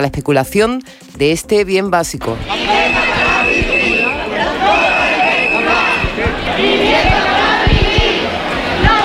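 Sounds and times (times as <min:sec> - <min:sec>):
speech: 0:00.0 - 0:02.8
protest crowd chanting at housing demonstration: 0:02.4 - 0:09.0.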